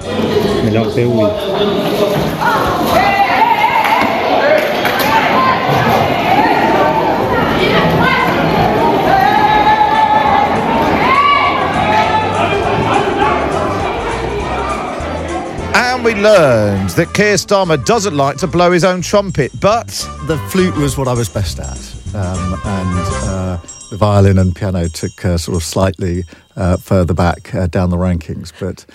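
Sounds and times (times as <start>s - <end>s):
speech: 0.7s - 2.0s, 16.1s - 28.9s
mass brawl uproar in a parliament chamber: 1.3s - 16.9s.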